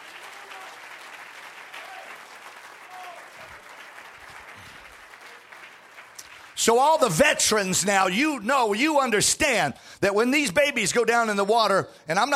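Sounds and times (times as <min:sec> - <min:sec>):
audience clapping: 0:00.0 - 0:07.7
speech: 0:06.6 - 0:12.3.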